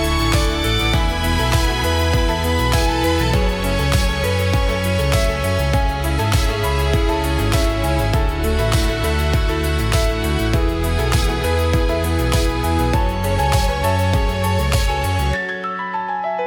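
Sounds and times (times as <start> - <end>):
calm professional corporate background music: 0.0 - 16.3.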